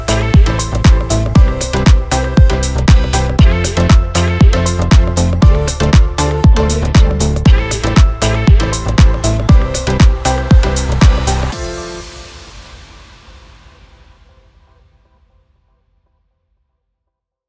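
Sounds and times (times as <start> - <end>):
house music with positive emotion: 0.0 - 12.7.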